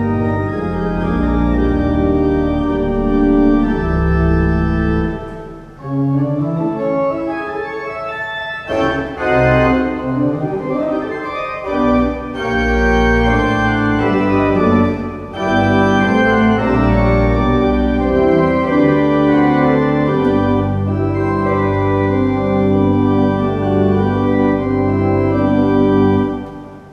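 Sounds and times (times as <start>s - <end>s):
pipe organ playing: 0.0s - 26.9s.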